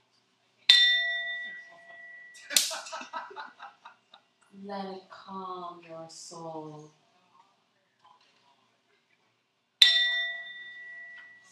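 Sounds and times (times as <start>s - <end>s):
singing bowl ringing: 0.7s - 2.4s, 9.8s - 11.5s
laughter: 2.4s - 4.4s
speech: 4.6s - 7.0s.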